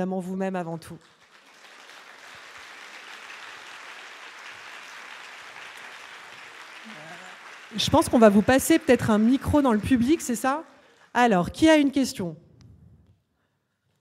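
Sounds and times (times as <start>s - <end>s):
speech: 0.0s - 1.2s, 7.7s - 12.4s
audience applause: 1.0s - 11.0s.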